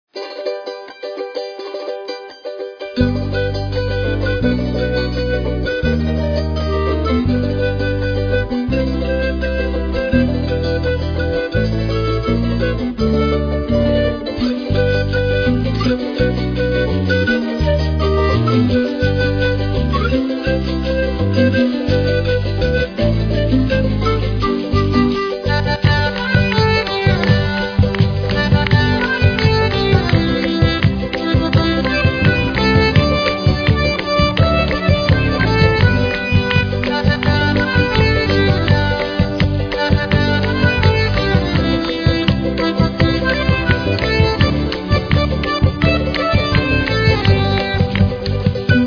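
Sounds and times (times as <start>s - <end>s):
Afro-Andean Christmas music: 0.1s - 48.8s.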